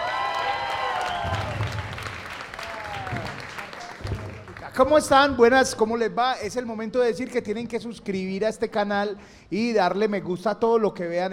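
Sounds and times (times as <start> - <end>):
cheering voices: 0.0 - 4.5
audience applause: 0.0 - 4.9
speech: 4.8 - 11.3.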